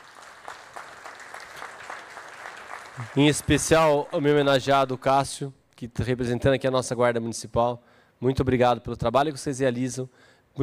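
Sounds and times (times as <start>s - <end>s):
applause for honorees at a ceremony: 0.0s - 4.4s
speech: 3.0s - 10.6s.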